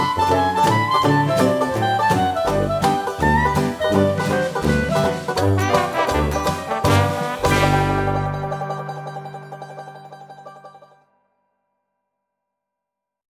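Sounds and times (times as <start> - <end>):
fast music: 0.0 - 10.6.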